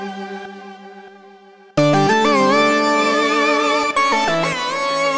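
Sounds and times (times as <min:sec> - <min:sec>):
synth melody: 0:01.8 - 0:05.0.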